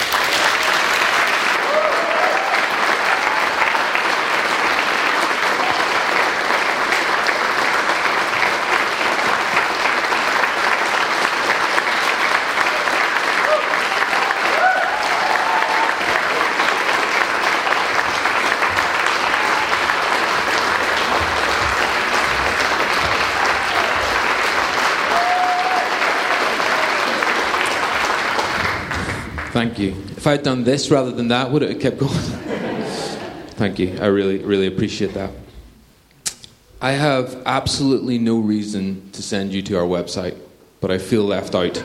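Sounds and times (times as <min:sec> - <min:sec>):
applause: 0:00.0 - 0:29.9
speech: 0:30.2 - 0:32.4, 0:33.6 - 0:35.4, 0:36.8 - 0:41.8
laughter: 0:32.0 - 0:34.0, 0:41.6 - 0:41.8.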